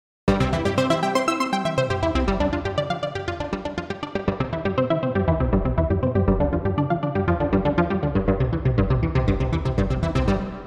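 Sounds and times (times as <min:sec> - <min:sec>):
synthesizer in WLA parking garage: 0:00.3 - 0:10.6.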